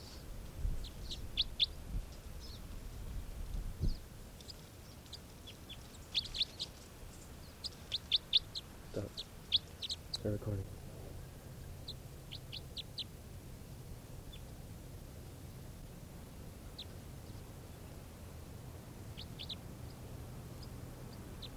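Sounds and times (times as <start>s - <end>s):
bird calls with short high chirps: 0.0s - 2.8s, 3.8s - 10.4s, 11.1s - 13.2s, 14.2s - 14.6s, 16.6s - 18.0s, 19.1s - 21.5s
steady low rumble: 0.0s - 21.5s
speech: 10.2s - 10.8s.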